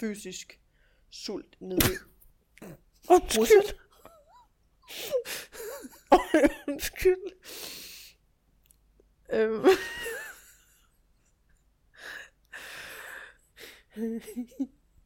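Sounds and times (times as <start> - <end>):
speech: 0.0 - 3.8, 4.9 - 7.8, 9.3 - 10.2, 14.0 - 14.8
sudden sneeze: 1.8 - 2.2.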